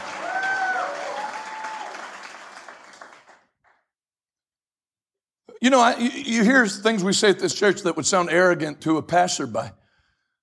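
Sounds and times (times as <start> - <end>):
people clapping: 0.0 - 3.9
speech: 5.6 - 9.8.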